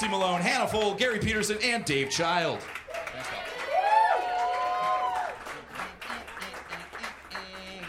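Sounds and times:
speech: 0.0 - 3.4
crowd clapping: 0.0 - 7.8
whoops and cheers: 2.9 - 5.4.

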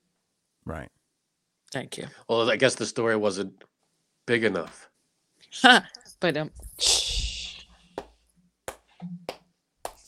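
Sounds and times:
speech: 0.7 - 1.0, 1.7 - 3.7, 4.3 - 4.9, 5.5 - 7.0
hand clap: 8.0 - 10.0.

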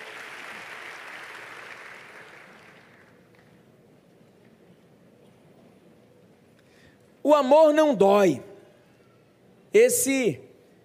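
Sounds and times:
audience applause: 0.0 - 3.4
speech: 7.2 - 8.5, 9.7 - 10.4.

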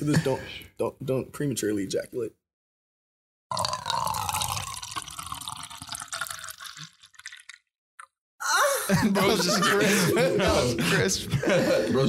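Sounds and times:
speech: 0.0 - 2.4, 8.9 - 12.0
person chugging a drink: 3.5 - 8.2
laughter: 8.4 - 12.0.

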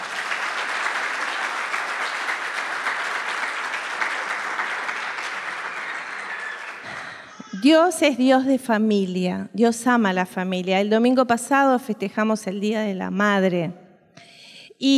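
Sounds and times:
audience applause: 0.0 - 7.5
speech: 7.6 - 13.8, 14.8 - 14.9.

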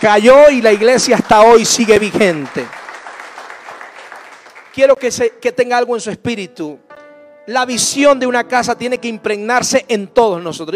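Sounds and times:
speech: 0.0 - 2.8, 4.8 - 6.8, 7.5 - 10.7
audience applauding: 0.0 - 5.0.

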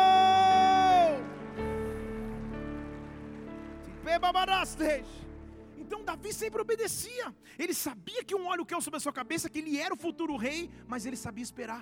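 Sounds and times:
audience applauding: 0.0 - 6.8
speech: 4.1 - 11.8.

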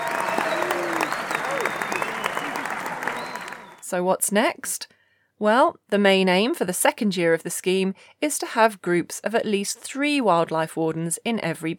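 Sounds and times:
round of applause: 0.0 - 3.9
speech: 3.9 - 11.7.

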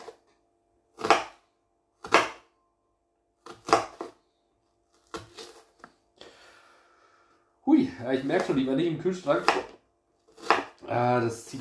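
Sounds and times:
knife chopping an onion on a board: 1.0 - 1.4, 2.0 - 2.5, 3.4 - 4.2, 9.3 - 11.5
speech: 7.8 - 9.8, 10.9 - 11.5.

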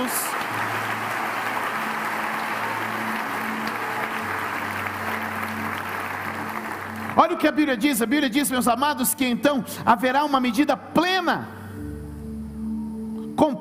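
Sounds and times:
audience applause: 0.0 - 7.6
speech: 7.2 - 11.6.

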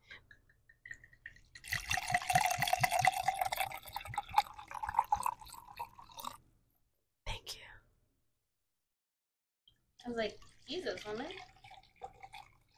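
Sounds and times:
pouring a drink: 0.3 - 6.4, 10.3 - 12.7
speech: 10.2 - 11.5.

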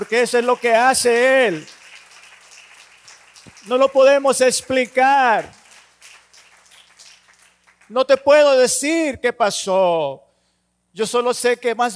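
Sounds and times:
speech: 0.0 - 1.8, 3.6 - 5.6, 7.9 - 10.2, 10.9 - 11.9
audience applause: 0.0 - 7.9.

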